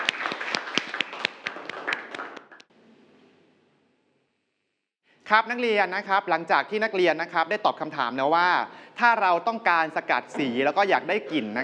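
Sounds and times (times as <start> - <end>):
group of students clapping in a classroom: 0.0 - 2.7
speech: 5.3 - 11.6.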